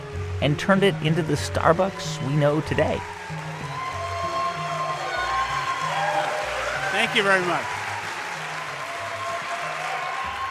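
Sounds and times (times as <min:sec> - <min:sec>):
speech: 0:00.4 - 0:03.2, 0:07.1 - 0:07.8
live audience applause greeting Howard Schultz in Seattle: 0:03.0 - 0:10.5.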